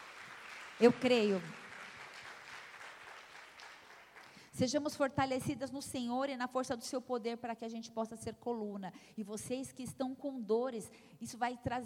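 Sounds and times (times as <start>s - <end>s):
audience applause: 0.0s - 4.4s
speech: 0.8s - 1.6s, 4.6s - 11.8s.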